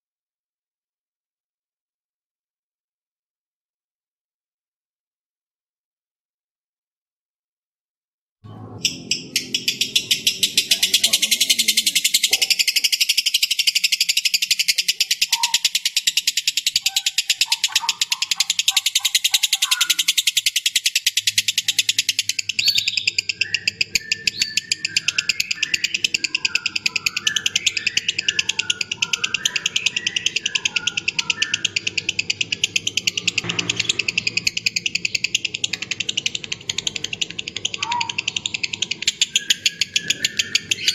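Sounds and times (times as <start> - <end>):
lovebird rapid high trill: 8.4 - 40.9.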